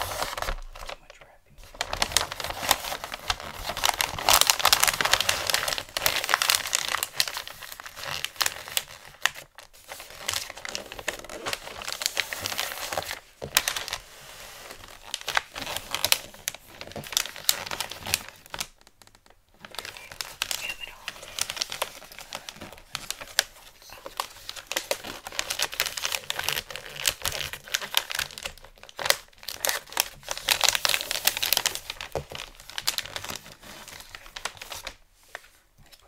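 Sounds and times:
gift wrapping paper crinkling and crumpling: 0:00.0 - 0:36.0.

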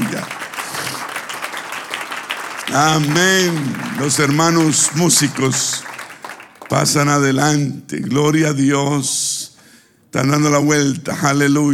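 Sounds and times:
audience applause: 0:00.0 - 0:07.0
speech: 0:02.7 - 0:05.9, 0:06.7 - 0:09.3, 0:10.1 - 0:11.7.

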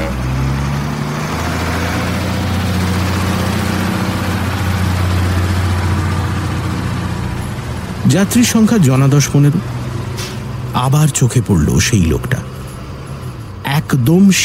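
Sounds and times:
bus engine rumbling as the bus pulls away: 0:00.0 - 0:14.4
speech: 0:08.1 - 0:09.8, 0:10.8 - 0:12.6, 0:13.8 - 0:14.4.

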